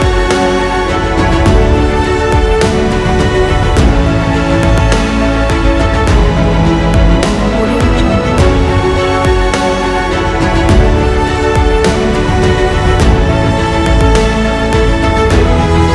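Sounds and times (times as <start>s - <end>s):
dramatic cinematic adventure music: 0.0s - 15.9s.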